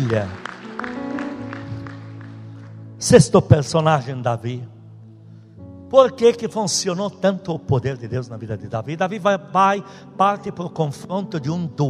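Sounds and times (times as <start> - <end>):
speech: 0.0 - 0.4, 3.0 - 4.7, 5.9 - 11.8
audience applauding: 0.0 - 2.9.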